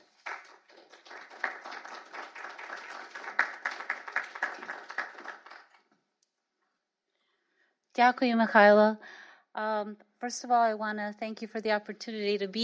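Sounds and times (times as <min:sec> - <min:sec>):
audience applauding to welcome a speaker: 0:00.0 - 0:05.9
speech: 0:08.0 - 0:12.6.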